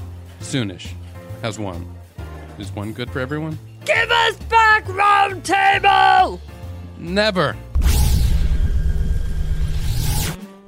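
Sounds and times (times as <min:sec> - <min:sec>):
speech: 0:00.5 - 0:02.0, 0:02.6 - 0:07.7
ray blast shot from someone's hands: 0:07.8 - 0:10.4.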